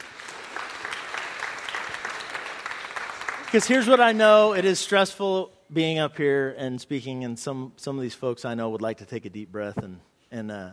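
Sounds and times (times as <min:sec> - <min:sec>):
audience applause: 0:00.0 - 0:04.7
speech: 0:03.5 - 0:10.7.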